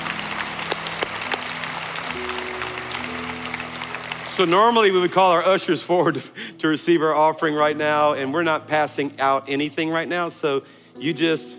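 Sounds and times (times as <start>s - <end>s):
church congregation applauding after a prayer: 0.0s - 5.6s
speech: 4.4s - 11.5s.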